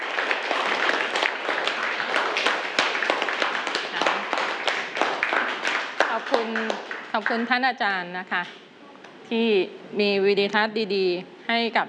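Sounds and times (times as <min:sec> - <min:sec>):
group of students clapping: 0:00.0 - 0:07.6
speech: 0:07.2 - 0:08.6, 0:09.3 - 0:11.8.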